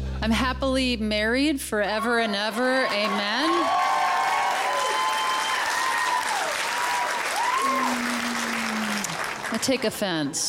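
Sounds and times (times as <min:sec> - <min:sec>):
speech: 0:00.2 - 0:03.9, 0:09.5 - 0:10.4
whoops and cheers: 0:02.0 - 0:09.2
audience applause: 0:02.8 - 0:10.0.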